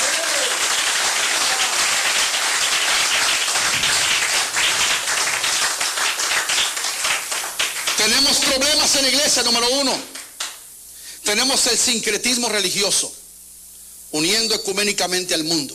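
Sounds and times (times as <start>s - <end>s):
audience applauding: 0.0s - 9.0s
speech: 8.1s - 10.1s, 11.3s - 13.2s, 14.1s - 15.7s.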